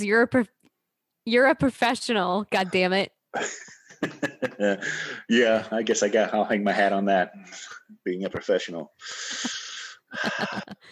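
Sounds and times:
speech: 0.0 - 0.6, 1.3 - 10.9
laughter: 3.4 - 5.2, 9.2 - 10.9
deep heavy breathing: 4.7 - 5.3, 9.0 - 10.9.

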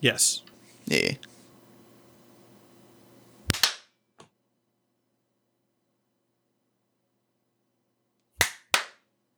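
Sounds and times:
speech: 0.0 - 1.3
hand claps for recording sync: 3.4 - 3.8, 8.4 - 9.0.

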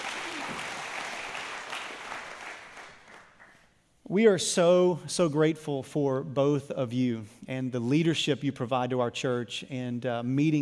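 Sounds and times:
church audience applause welcoming two women to the stage: 0.0 - 3.6
speech: 4.1 - 10.5.

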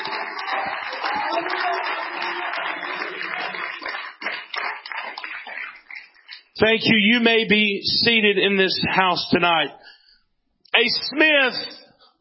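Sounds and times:
crowd clapping: 0.0 - 6.6
speech: 6.6 - 9.8, 10.8 - 11.8.

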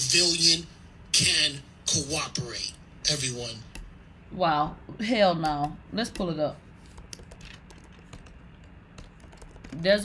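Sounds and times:
speech: 0.1 - 3.7, 4.3 - 6.6, 9.7 - 10.0
faint typing on a computer keyboard: 6.9 - 10.0.

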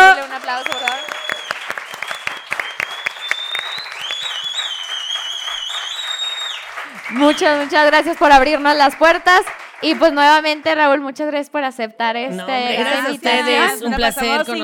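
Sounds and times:
audience clapping: 0.0 - 11.0
high whistles and cheers: 0.1 - 7.9
speech: 7.3 - 14.6.

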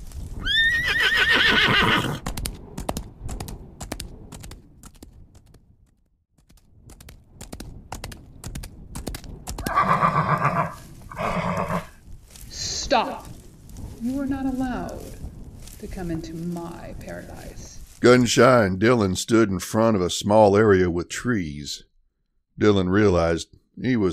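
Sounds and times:
hooves clip-clopping: 0.0 - 18.6
horse whinnying: 0.4 - 2.2, 9.6 - 12.0
speech: 13.0 - 13.3, 14.0 - 15.1, 15.8 - 21.9, 22.6 - 24.1.

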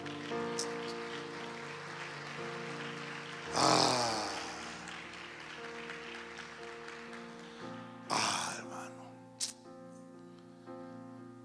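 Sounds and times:
clapping: 0.0 - 8.2.

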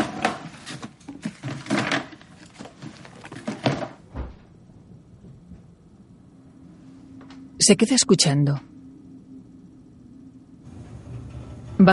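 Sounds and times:
items put back into a box with wooden clunks: 0.0 - 4.4
speech: 7.7 - 8.7.

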